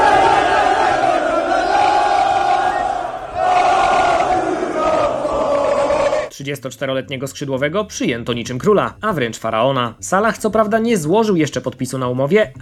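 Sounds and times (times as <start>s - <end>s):
thousands of football fans chanting and singing at an airport: 0.0s - 6.3s
speech: 6.4s - 12.6s.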